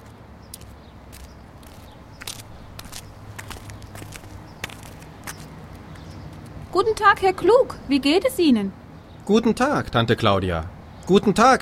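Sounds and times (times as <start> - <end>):
footsteps of a small group walking: 0.0 - 6.6
speech: 6.8 - 11.6.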